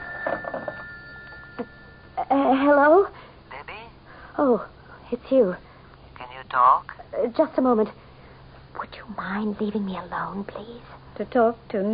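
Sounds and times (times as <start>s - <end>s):
telephone bell ringing: 0.0s - 2.2s
faint steady hum: 0.0s - 11.9s
speech: 1.6s - 3.2s, 4.4s - 5.7s, 6.5s - 8.0s, 9.2s - 11.9s.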